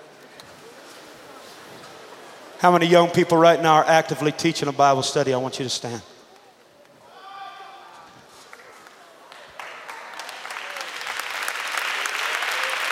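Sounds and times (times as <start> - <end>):
speech: 2.6 - 6.1
audience clapping: 8.4 - 12.9.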